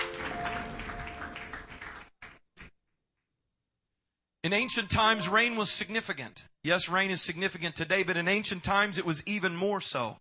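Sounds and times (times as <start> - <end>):
crowd clapping: 0.0 - 2.7
speech: 4.4 - 10.1.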